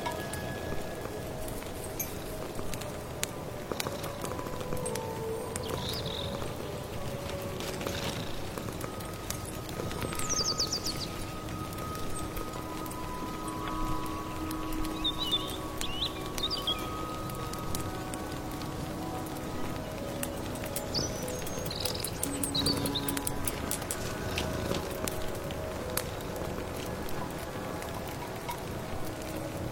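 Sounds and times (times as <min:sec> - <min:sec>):
firewood: 0:00.0 - 0:29.7
rustling rain: 0:00.0 - 0:29.7
birdsong in a late autumn forest: 0:03.6 - 0:29.4.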